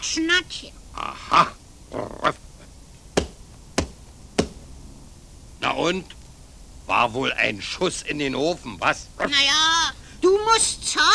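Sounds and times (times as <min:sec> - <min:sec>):
speech: 0:00.2 - 0:02.2, 0:05.8 - 0:06.2, 0:06.9 - 0:11.1
foot stamping hard on the ground: 0:03.2 - 0:04.7.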